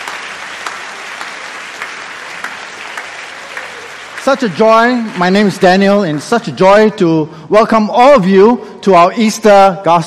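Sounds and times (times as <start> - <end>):
church congregation at an Easter gospel service applauding the choir: 0.0 - 6.9
speech: 4.2 - 10.0.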